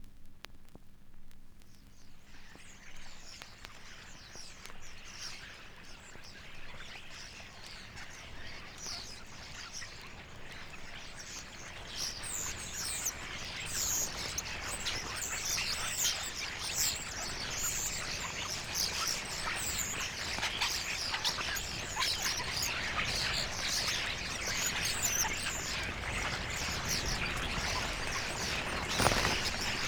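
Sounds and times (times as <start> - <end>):
common starling flock chattering: 6.4 - 29.8.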